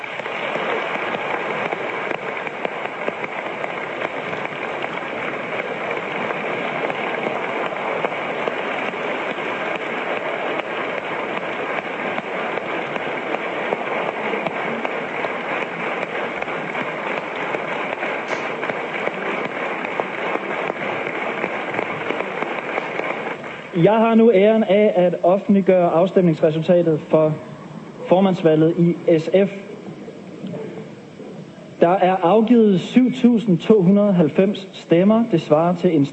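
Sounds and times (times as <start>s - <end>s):
audience clapping in a hall: 0.0s - 27.4s
speech: 23.8s - 27.5s, 28.1s - 29.6s, 31.8s - 36.1s.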